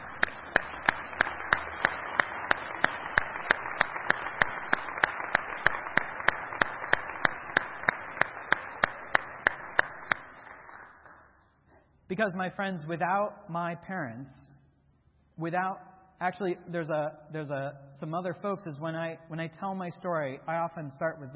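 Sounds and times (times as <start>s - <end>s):
audience applause: 0.0s - 11.3s
sharp evenly timed clap: 0.0s - 11.4s
speech: 12.1s - 14.5s, 15.4s - 21.3s.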